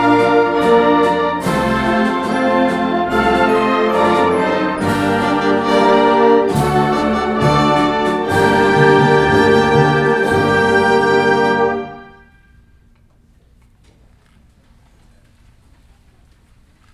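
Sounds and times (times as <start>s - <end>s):
national anthem music: 0.0s - 12.8s.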